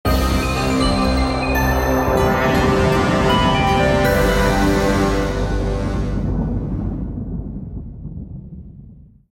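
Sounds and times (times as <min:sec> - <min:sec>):
ice storm: 0:00.1 - 0:09.3.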